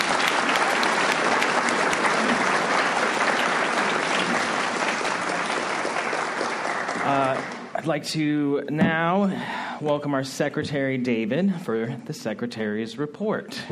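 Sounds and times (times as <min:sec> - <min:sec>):
audience applause: 0:00.0 - 0:07.8
speech: 0:07.9 - 0:13.7.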